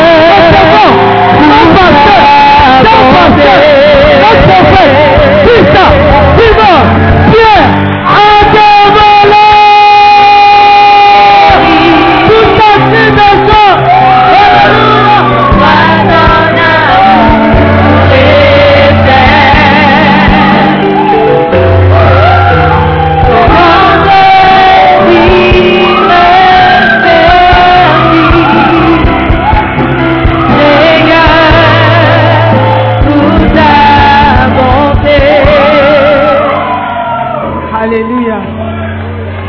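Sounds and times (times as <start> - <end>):
crowd shouting and cheering: 0.0 - 39.4.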